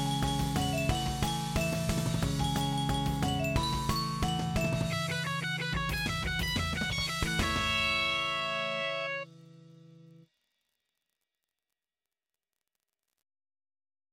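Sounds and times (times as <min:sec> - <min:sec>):
guitar: 0:00.0 - 0:10.2.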